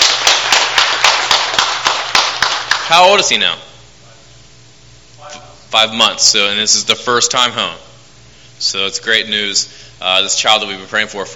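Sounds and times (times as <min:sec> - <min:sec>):
audience clapping: 0:00.0 - 0:03.2
speech: 0:02.9 - 0:03.7, 0:05.7 - 0:07.9, 0:08.6 - 0:11.3.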